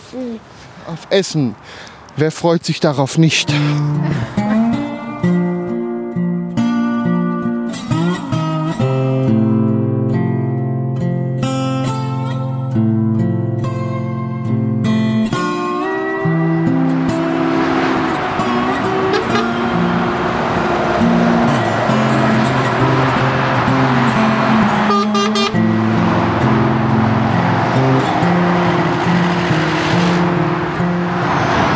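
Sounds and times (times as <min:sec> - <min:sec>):
steady roar of heavy motorway traffic: 0:00.0 - 0:31.7
speech: 0:00.1 - 0:04.7
lorries honking on motorway below a bridge: 0:03.2 - 0:05.6, 0:15.5 - 0:31.7.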